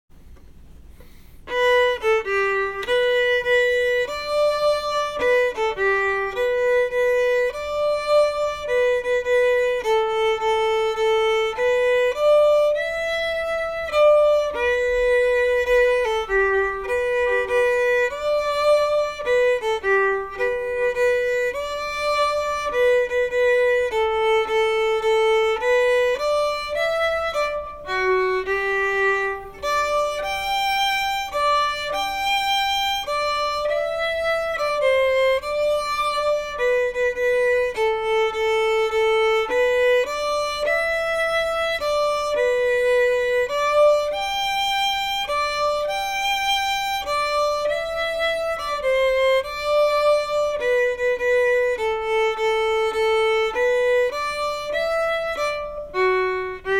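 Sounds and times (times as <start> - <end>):
waltz music: 1.5 - 56.7.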